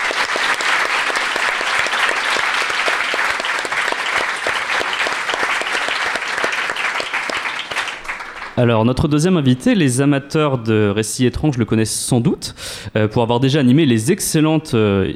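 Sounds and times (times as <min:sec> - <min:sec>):
audience applause: 0:00.0 - 0:08.6
speech: 0:08.6 - 0:15.1.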